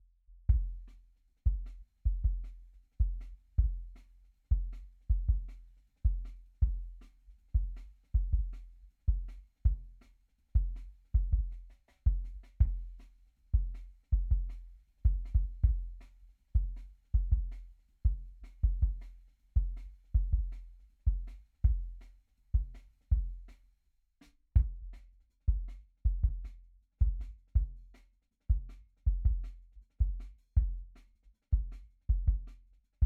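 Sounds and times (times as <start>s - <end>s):
drum and bass sub kick drum: 0.5s - 0.9s, 1.5s - 2.4s, 3.0s - 5.5s, 7.6s - 9.8s, 10.6s - 11.5s, 12.1s - 12.9s, 13.6s - 16.0s, 16.6s - 17.5s, 18.1s - 19.0s, 19.6s - 22.0s, 24.6s - 24.9s, 25.5s - 27.8s, 28.5s - 30.9s, 31.6s - 33.0s.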